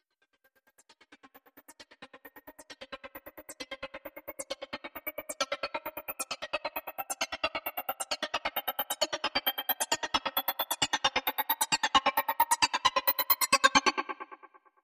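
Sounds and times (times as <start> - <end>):
glitchy riser: 1.4 - 13.7.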